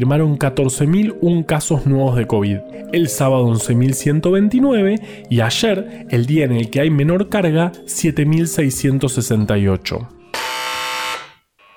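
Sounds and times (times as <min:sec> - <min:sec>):
speech: 0:00.0 - 0:10.2
doorbell ringing: 0:10.3 - 0:11.7.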